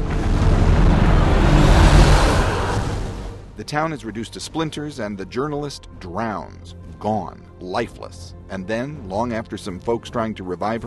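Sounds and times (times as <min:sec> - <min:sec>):
tsunami tidal wave slamming into a resort: 0:00.0 - 0:03.6
speech: 0:03.7 - 0:10.8.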